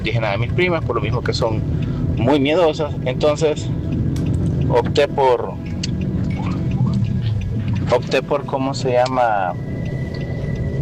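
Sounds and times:
speech: 0.0 - 4.0, 4.7 - 5.7, 7.9 - 9.7
car rumble heard from inside while driving home from work: 0.0 - 10.7.

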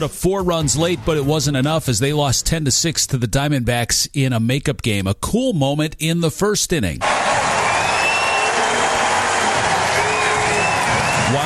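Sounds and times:
speech: 0.0 - 7.5
small ballpark crowd cheering and clapping: 7.0 - 11.4
thin high whistles: 7.4 - 11.4.

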